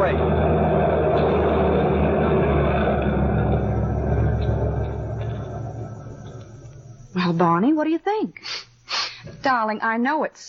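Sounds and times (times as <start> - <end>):
truck engine rumbling: 0.0 - 7.4
speech: 7.3 - 10.4.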